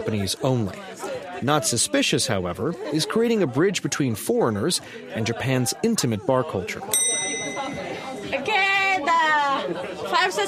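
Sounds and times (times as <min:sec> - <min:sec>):
speech: 0:00.0 - 0:07.3, 0:10.2 - 0:10.4
murmur of people talking at a bar in Japan: 0:00.0 - 0:10.4
small bell ringing at a bar in Japan to order a shot: 0:07.0 - 0:08.1.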